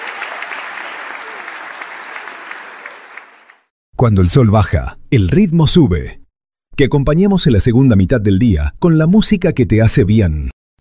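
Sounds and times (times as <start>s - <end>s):
audience applause: 0.0s - 3.7s
speech: 4.0s - 6.2s, 6.8s - 10.5s.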